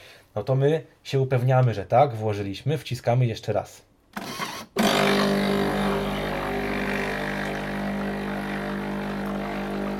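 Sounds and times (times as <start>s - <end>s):
speech: 0.4s - 4.3s
espresso machine rinsing milk frother with water: 4.3s - 9.9s.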